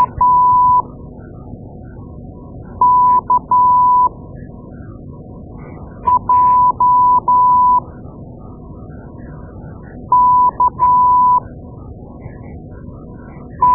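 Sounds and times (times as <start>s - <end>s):
morse code beeps: 0.0s - 0.8s, 2.8s - 4.1s, 6.1s - 7.8s, 10.1s - 11.4s.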